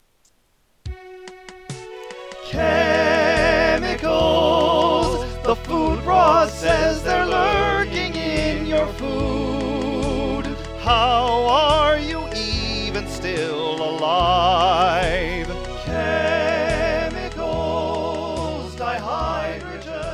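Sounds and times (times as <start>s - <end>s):
slow dance music: 0.8s - 20.1s.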